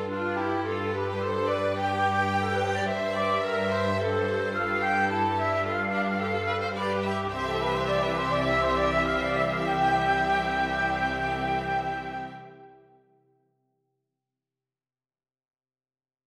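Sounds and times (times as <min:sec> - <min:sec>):
strings: 0:00.0 - 0:12.8.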